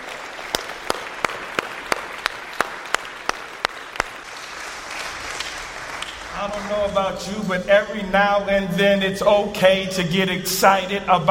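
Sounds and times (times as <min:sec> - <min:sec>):
audience hand clapping in praise: 0:00.0 - 0:07.6
speech: 0:06.4 - 0:11.2.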